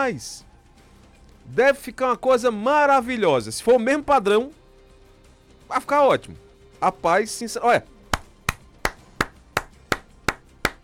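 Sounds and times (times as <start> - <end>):
speech: 0.0 - 0.5, 1.5 - 4.6, 5.7 - 7.9
person clapping: 8.1 - 10.8.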